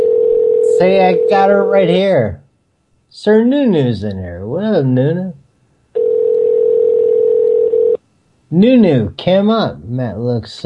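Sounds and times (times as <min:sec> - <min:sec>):
telephone call tone: 0:00.0 - 0:01.8, 0:06.0 - 0:08.0
speech: 0:00.8 - 0:02.4, 0:03.1 - 0:05.4, 0:08.5 - 0:10.6.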